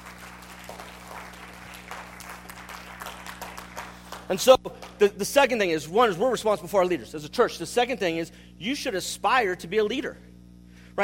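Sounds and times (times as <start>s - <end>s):
audience applause: 0.0s - 5.0s
speech: 4.3s - 10.3s.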